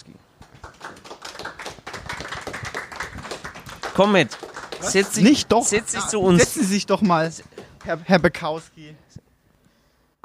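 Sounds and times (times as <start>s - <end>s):
audience applause: 0.4s - 8.1s
speech: 4.0s - 9.0s.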